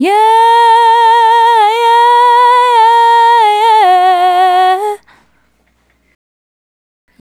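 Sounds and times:
woman singing solo: 0:00.0 - 0:05.0.

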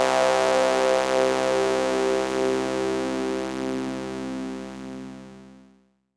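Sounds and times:
Yamaha CS40M synthesizer pads: 0:00.1 - 0:05.7.

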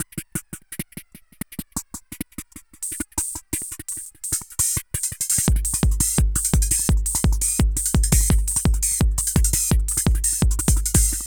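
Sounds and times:
techno loops with echo: 0:02.8 - 0:11.3.

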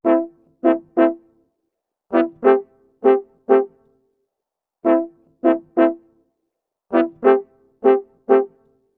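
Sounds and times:
orchestral brass in A minor at 95 bpm: 0:00.0 - 0:01.2, 0:02.1 - 0:03.8, 0:04.8 - 0:06.0, 0:06.9 - 0:08.6.

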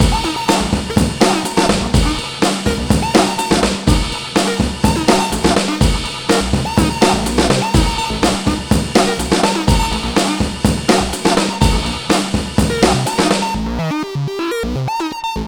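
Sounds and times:
trailer music break at 124 bpm: 0:00.0 - 0:15.4.

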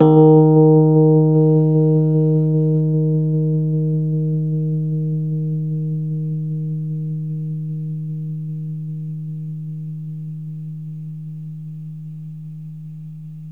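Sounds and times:
Rhodes electric piano D#2 note: 0:00.0 - 0:09.0.

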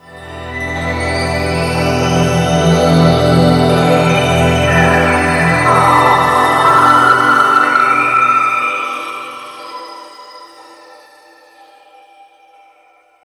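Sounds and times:
synth pad: 0:00.0 - 0:10.6.

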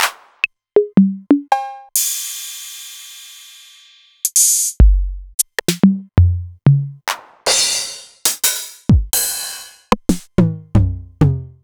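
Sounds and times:
Novation Drumstation drum machine: 0:00.0 - 0:00.2, 0:00.8 - 0:02.3, 0:04.3 - 0:11.6.

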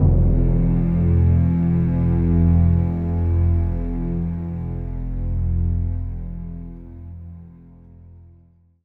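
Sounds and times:
bass endings: 0:00.0 - 0:05.5.

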